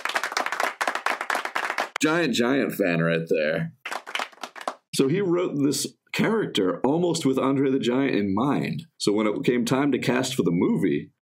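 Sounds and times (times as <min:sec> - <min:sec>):
applause: 0:00.0 - 0:02.0, 0:03.8 - 0:04.9
speech: 0:02.0 - 0:03.8, 0:05.0 - 0:11.2.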